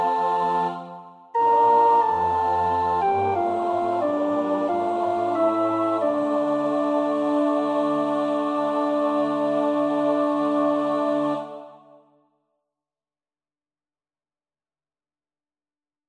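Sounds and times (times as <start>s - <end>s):
soprano singing: 0.0s - 12.0s.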